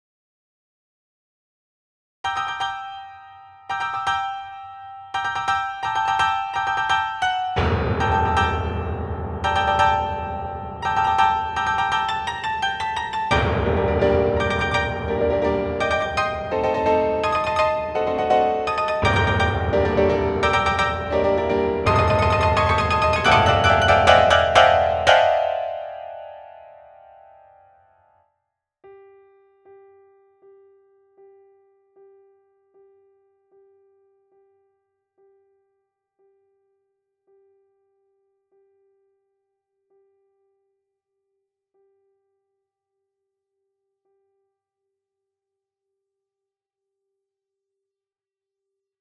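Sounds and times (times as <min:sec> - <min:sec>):
mini grand piano: 0:02.2 - 0:28.2, 0:28.8 - 0:39.1.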